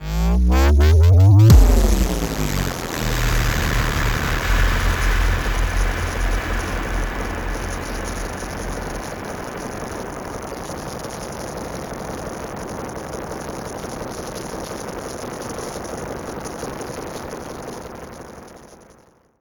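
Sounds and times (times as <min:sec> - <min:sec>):
boom: 0:00.3 - 0:10.6.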